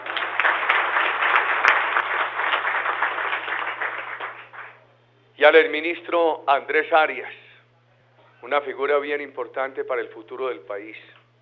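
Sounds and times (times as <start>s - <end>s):
audience applause: 0.0s - 4.8s
speech: 5.4s - 7.4s, 8.4s - 11.2s.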